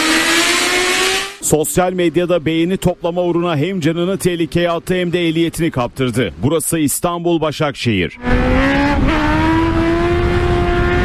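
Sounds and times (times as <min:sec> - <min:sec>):
motorcycle engine roaring during a wheelie on a road in Başakşehir, Istanbul: 0:00.0 - 0:05.3, 0:08.2 - 0:11.0
speech: 0:01.5 - 0:09.3.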